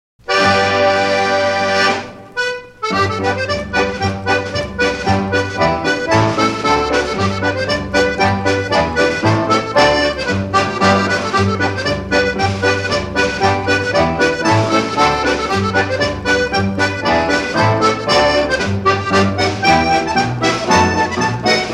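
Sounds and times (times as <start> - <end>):
instrumental music: 0.2 - 21.7.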